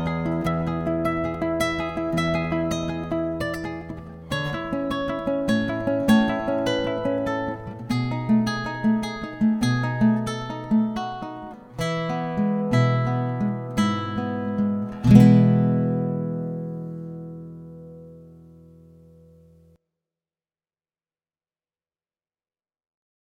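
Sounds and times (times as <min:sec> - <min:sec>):
Spanish ballad: 0:00.0 - 0:18.5.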